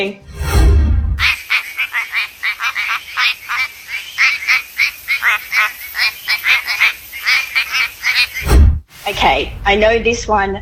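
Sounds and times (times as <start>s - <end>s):
speech: 0.0s - 0.3s, 9.2s - 10.6s
quacking frog calling: 1.2s - 8.5s.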